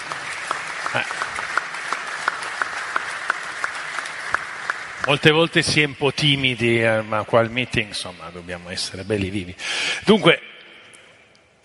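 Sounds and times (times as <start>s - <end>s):
audience applause: 0.0s - 6.4s
speech: 0.9s - 1.2s, 5.1s - 10.4s.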